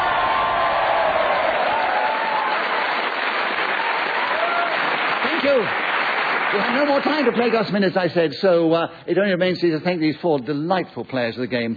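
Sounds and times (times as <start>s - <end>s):
audience applause: 0.0s - 7.8s
speech: 5.5s - 5.8s, 6.5s - 11.7s.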